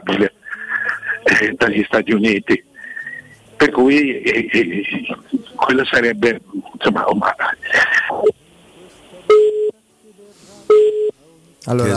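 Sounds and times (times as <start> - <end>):
faint telephone line hiss: 0.0 - 11.9
speech: 1.4 - 2.7, 3.7 - 8.4, 11.7 - 11.9
call-waiting beeps cutting into a telephone link: 9.3 - 9.7, 10.7 - 11.1.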